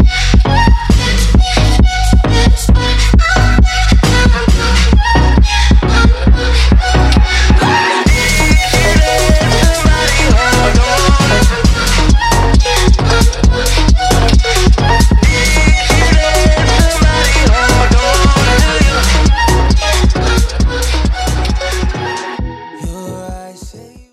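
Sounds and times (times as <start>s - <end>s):
dubstep trap music intro: 0.0s - 24.1s.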